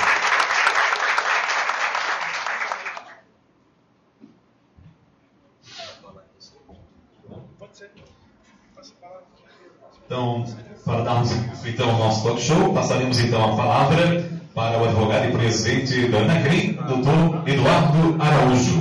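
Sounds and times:
audience applause: 0.0 - 3.2
quiet murmurs and faint voices: 5.6 - 18.7
speech: 10.1 - 18.7.

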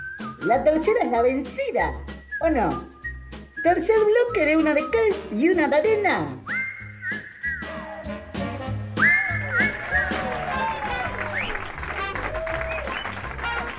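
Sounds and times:
speech: 0.4 - 2.9, 3.6 - 6.5
audience applause: 9.1 - 13.7.

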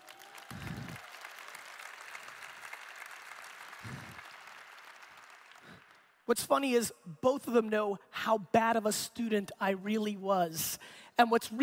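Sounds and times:
audience applause: 0.0 - 6.1
speech: 6.3 - 11.6.

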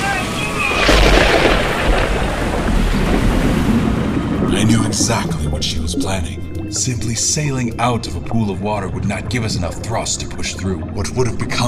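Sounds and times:
blast through a ship's hull: 0.6 - 5.1
speech: 5.1 - 11.6.

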